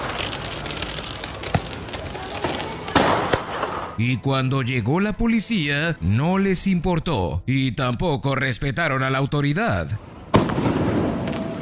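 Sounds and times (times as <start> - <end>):
fireworks crackling hiss: 0.0 - 4.0, 10.4 - 11.5
speech: 4.0 - 10.1.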